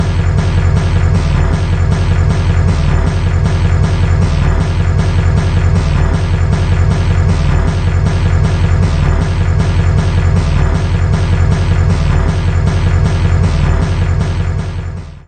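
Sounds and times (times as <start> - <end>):
big drums: 0.0 - 15.2.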